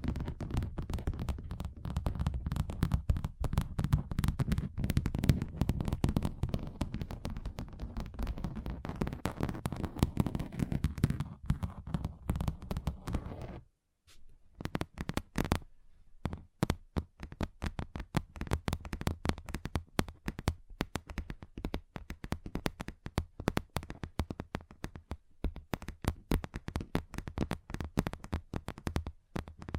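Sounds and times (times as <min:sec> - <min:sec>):
fingers drumming and tapping on a table: 0:00.0 - 0:13.6, 0:16.2 - 0:29.7.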